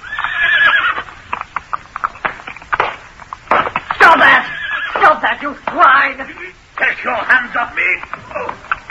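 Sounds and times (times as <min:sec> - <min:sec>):
horse whinnying: 0:00.0 - 0:01.1, 0:04.0 - 0:05.2
speech: 0:05.4 - 0:08.7.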